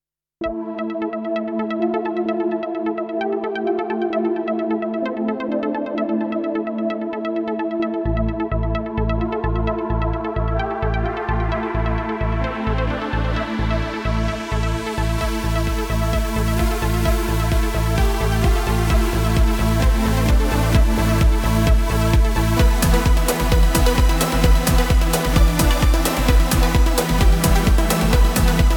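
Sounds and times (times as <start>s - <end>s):
molecular electronic background music: 0.4s - 28.7s.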